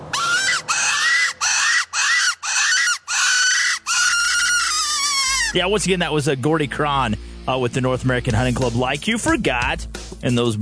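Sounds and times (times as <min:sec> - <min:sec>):
prey distress call for calling coyotes: 0:00.1 - 0:05.6
speech: 0:05.5 - 0:10.6.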